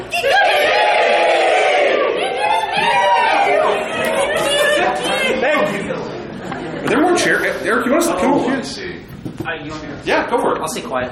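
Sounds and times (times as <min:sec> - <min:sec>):
crowd chanting a game-day chant: 0:00.1 - 0:05.8
speech: 0:07.2 - 0:11.1.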